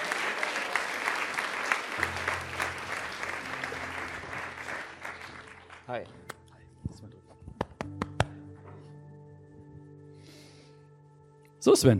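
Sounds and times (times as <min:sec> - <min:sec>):
audience applause: 0:00.0 - 0:06.2
speech: 0:02.0 - 0:02.3, 0:05.9 - 0:06.3, 0:11.6 - 0:11.9.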